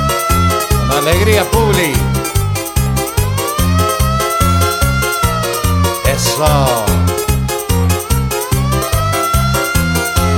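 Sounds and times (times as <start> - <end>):
fire engine siren wailing: 0.0 - 10.3
speech: 1.1 - 2.4, 6.4 - 6.8.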